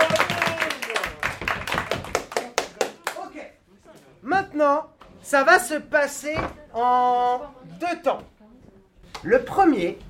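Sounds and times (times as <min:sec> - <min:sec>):
audience applauding the winner: 0:00.0 - 0:03.2
speech: 0:04.6 - 0:08.3, 0:09.2 - 0:10.0.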